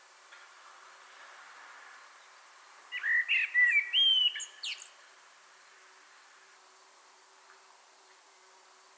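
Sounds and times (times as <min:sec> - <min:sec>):
common blackbird song: 0:02.9 - 0:05.0.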